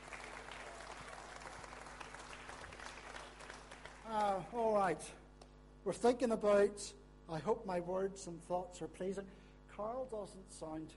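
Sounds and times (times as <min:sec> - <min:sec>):
audience clapping: 0:00.0 - 0:04.6
speech: 0:04.1 - 0:05.2, 0:05.8 - 0:10.9.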